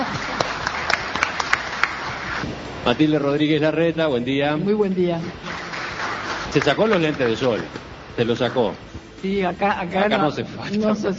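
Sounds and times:
light applause from a small group of guests: 0:00.0 - 0:02.4, 0:05.3 - 0:08.8
speech: 0:02.8 - 0:05.7, 0:06.5 - 0:11.1.

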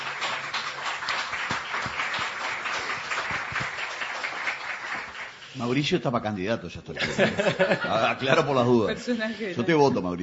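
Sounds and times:
crowd applause: 0:00.0 - 0:05.6
speech: 0:05.6 - 0:10.2
laughter: 0:07.0 - 0:09.6.

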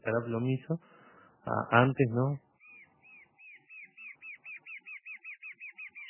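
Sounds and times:
speech: 0:00.0 - 0:02.4
brown antshrike (batará parda) calling in the forest: 0:02.6 - 0:06.0.

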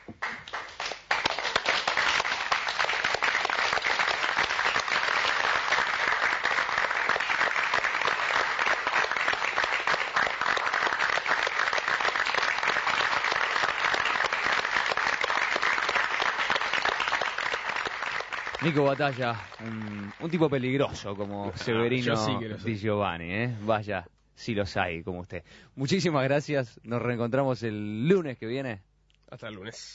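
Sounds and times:
audience applause for a theatre play: 0:00.0 - 0:21.4
speech: 0:18.7 - 0:29.9.

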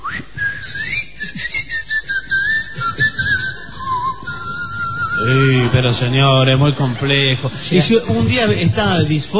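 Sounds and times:
person whistling a wavering tune to unlock a door: 0:00.0 - 0:05.7
laughter: 0:02.7 - 0:09.3
speech: 0:05.2 - 0:09.3.

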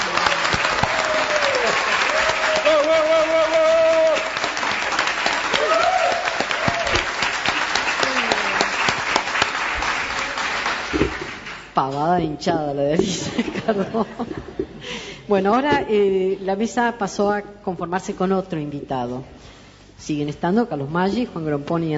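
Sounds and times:
people calling out and cheering: 0:00.0 - 0:10.9
people clapping: 0:00.0 - 0:11.8
speech: 0:12.2 - 0:21.9
laughter: 0:13.0 - 0:15.0.

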